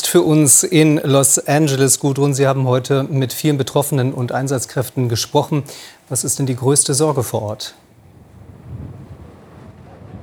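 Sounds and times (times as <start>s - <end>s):
speech: 0.1s - 7.9s
Santa Ana winds blowing against the microphone in Los Angeles: 7.1s - 10.2s.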